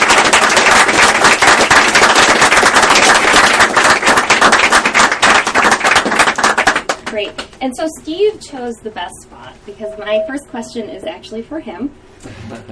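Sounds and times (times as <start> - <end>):
audience applause: 0.0 - 7.2
speech: 7.2 - 12.7.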